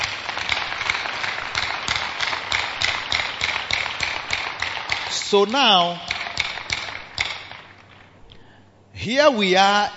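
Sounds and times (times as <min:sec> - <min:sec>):
audience clapping: 0:00.0 - 0:05.1
speech: 0:05.3 - 0:06.1, 0:09.0 - 0:09.9.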